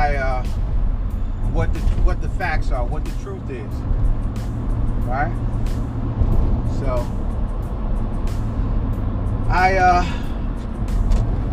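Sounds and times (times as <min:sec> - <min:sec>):
road rumble inside a moving car at dusk: 0:00.0 - 0:11.5
speech: 0:01.6 - 0:07.2, 0:09.5 - 0:10.2.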